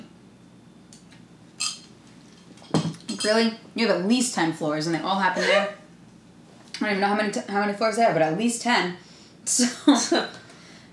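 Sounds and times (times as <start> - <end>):
low steady hum: 0.0 - 10.9
glasses clinking in a toast: 1.6 - 1.9, 2.6 - 3.5
speech: 3.2 - 5.8, 6.8 - 10.4.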